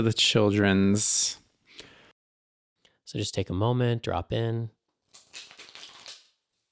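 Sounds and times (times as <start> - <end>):
speech: 0.0 - 1.4, 3.1 - 5.5
tarot cards being shuffled: 5.1 - 6.4.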